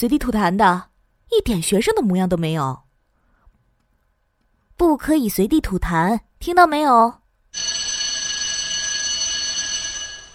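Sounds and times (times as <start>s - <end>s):
speech: 0.0s - 2.8s, 4.8s - 7.2s
school bell ringing: 7.6s - 10.3s.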